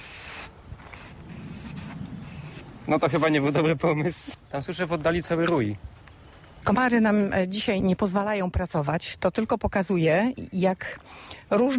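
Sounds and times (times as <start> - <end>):
insect repellent aerosol spray hissing from a can: 0.0 - 4.4
speech: 2.9 - 6.0, 6.6 - 11.7.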